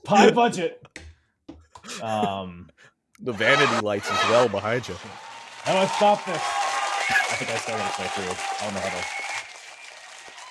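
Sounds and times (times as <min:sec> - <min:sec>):
speech: 0:00.0 - 0:00.9, 0:02.0 - 0:09.3
laughter: 0:03.3 - 0:05.0, 0:07.0 - 0:08.2
crowd clapping: 0:04.0 - 0:10.4.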